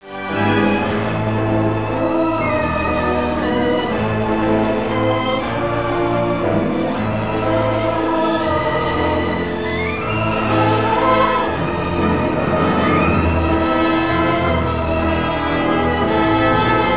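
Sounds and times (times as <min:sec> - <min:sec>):
orchestra: 0:00.0 - 0:16.9.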